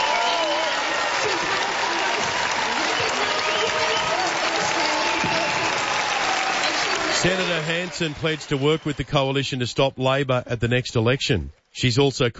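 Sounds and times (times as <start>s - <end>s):
conference audience standing ovation: 0.0s - 9.8s
speech: 7.2s - 12.3s.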